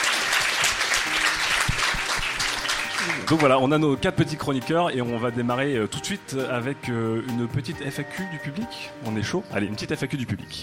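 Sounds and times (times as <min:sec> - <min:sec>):
audience applause: 0:00.0 - 0:03.6
speech: 0:03.3 - 0:10.6.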